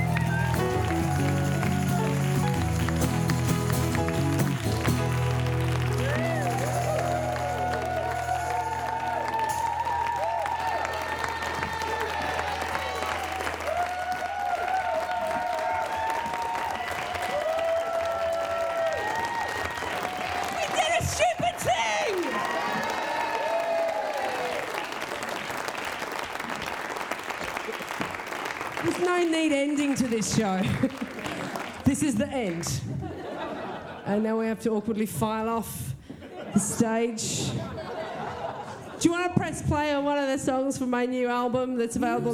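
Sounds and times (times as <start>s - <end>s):
crowd cheers, whoops and shouts: 0.0s - 3.0s, 4.1s - 25.3s
crowd applauding: 0.0s - 33.9s
speech: 30.2s - 30.9s, 31.9s - 32.9s, 34.1s - 35.9s, 36.6s - 37.8s, 39.1s - 42.3s
laughter: 30.6s - 31.8s, 32.7s - 34.2s, 36.0s - 39.3s.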